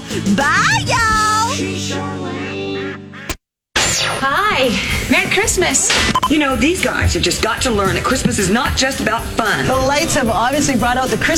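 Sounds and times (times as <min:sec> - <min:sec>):
speech: 0:00.2 - 0:02.2, 0:04.2 - 0:11.3
goose honking: 0:01.9 - 0:03.4.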